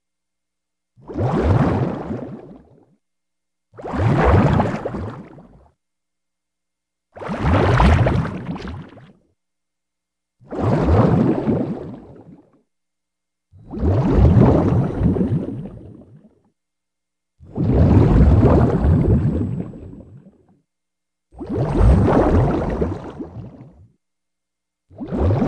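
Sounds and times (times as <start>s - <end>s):
bubbles released: 1.0s - 2.7s, 3.8s - 5.6s, 7.2s - 9.1s, 10.5s - 12.4s, 13.6s - 16.0s, 17.4s - 20.3s, 21.4s - 23.7s, 25.0s - 25.4s.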